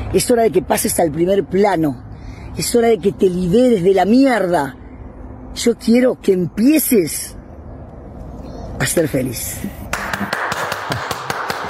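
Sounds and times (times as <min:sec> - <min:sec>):
speech: 0:00.1 - 0:04.8, 0:05.6 - 0:07.4, 0:08.8 - 0:11.0
hand clapping: 0:09.9 - 0:11.6.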